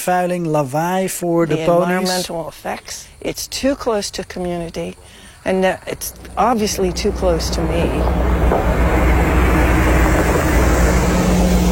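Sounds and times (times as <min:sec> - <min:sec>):
speech: 0:00.0 - 0:08.9
large bus driving past: 0:06.1 - 0:11.6.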